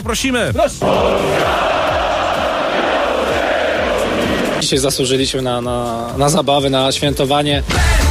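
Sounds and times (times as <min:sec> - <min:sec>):
speech: 0:00.0 - 0:01.9, 0:04.6 - 0:08.0
Polish football fans roaring and chanting: 0:00.8 - 0:04.8.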